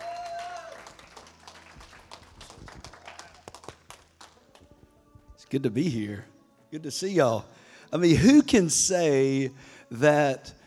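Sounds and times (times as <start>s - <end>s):
audience applause: 0.0s - 4.7s
speech: 5.5s - 10.6s.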